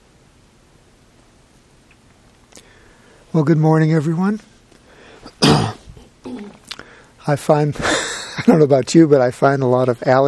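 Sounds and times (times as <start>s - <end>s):
speech: 3.4s - 4.5s, 7.2s - 10.2s
throat clearing: 5.3s - 6.6s.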